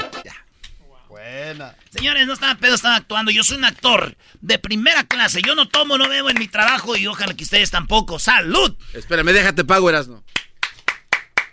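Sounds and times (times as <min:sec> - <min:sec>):
speech: 0:01.6 - 0:10.4
hands clapping: 0:04.9 - 0:07.7, 0:10.3 - 0:11.5.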